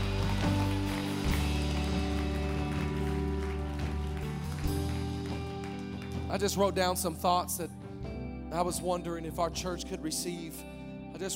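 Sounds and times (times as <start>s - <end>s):
audience clapping: 0.0s - 7.3s
speech: 6.3s - 7.8s, 8.5s - 11.3s.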